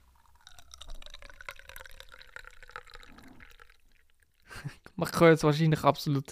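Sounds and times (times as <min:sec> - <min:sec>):
tea pouring from a thermos flask: 0:00.0 - 0:04.9
speech: 0:04.6 - 0:06.3.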